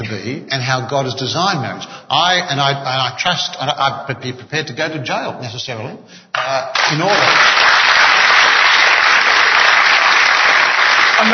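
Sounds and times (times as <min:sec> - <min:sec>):
speech: 0:00.1 - 0:07.8
audience applauding: 0:06.7 - 0:11.3.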